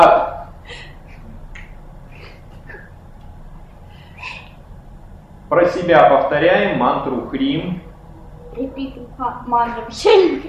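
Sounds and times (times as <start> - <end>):
finger snap: 1.5 - 1.8
speech: 5.5 - 7.9, 8.6 - 10.4.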